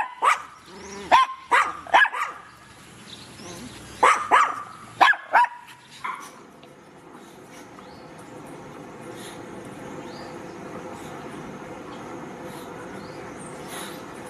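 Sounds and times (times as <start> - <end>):
happy dog barking: 0.0 - 0.5, 1.1 - 2.5, 4.0 - 6.3.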